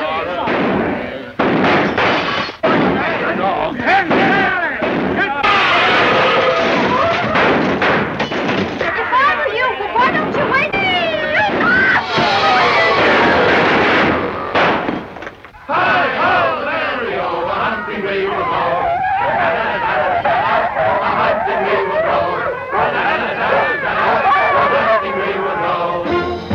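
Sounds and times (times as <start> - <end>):
people shouting: 0.0 - 26.4
trap shooting gunshots: 0.3 - 9.3, 10.0 - 15.7.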